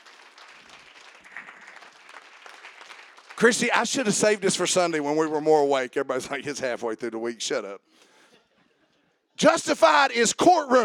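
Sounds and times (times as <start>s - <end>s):
audience clapping: 0.0s - 4.6s
speech: 3.4s - 8.1s, 9.4s - 10.8s.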